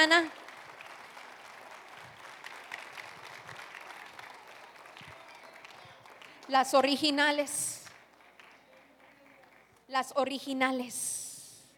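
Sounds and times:
speech: 0.0s - 0.4s, 6.5s - 7.8s, 9.9s - 11.2s
audience applause: 0.0s - 6.5s, 7.9s - 9.8s.

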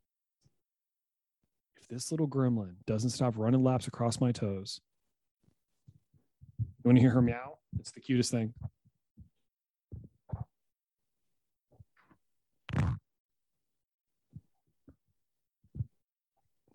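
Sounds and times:
speech: 1.9s - 4.9s, 6.8s - 8.8s
soft dull thumps: 5.9s - 6.8s
fart: 12.7s - 13.1s.

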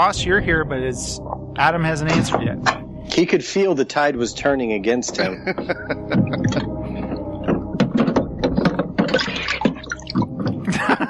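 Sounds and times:
speech: 0.0s - 6.6s
laughter: 3.2s - 7.2s, 10.7s - 11.0s
beer bottles pulled from an ice cooler of melted ice: 8.6s - 10.7s.

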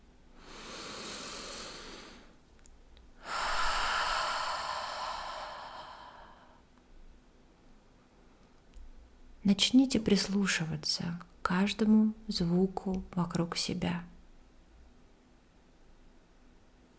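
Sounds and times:
exhale through the mouth during a guided breathing exercise: 0.4s - 2.4s, 3.2s - 6.7s
inhale through the nose during a guided breathing exercise: 0.4s - 2.4s, 3.2s - 6.7s
speech: 9.5s - 14.1s.

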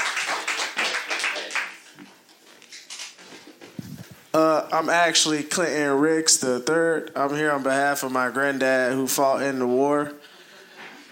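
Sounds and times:
audience applause: 0.0s - 1.8s
speech: 4.4s - 10.2s.

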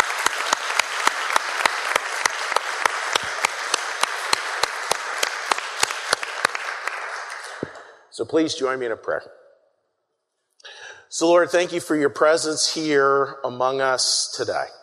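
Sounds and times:
audience applause: 0.0s - 7.8s
speech: 8.2s - 9.4s, 11.2s - 14.8s.

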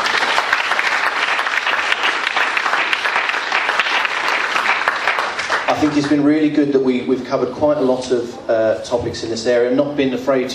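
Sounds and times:
audience applause for a panel: 0.0s - 6.5s
speech: 5.8s - 10.5s.

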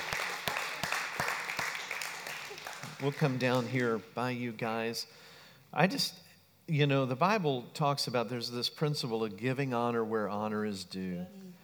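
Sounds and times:
audience clapping a round of applause: 0.0s - 4.2s
speech: 3.0s - 11.4s.

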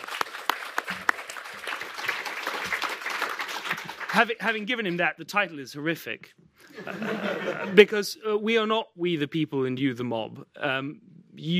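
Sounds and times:
audience applause: 0.0s - 4.4s
speech: 4.2s - 11.5s
laughter: 6.7s - 7.9s.

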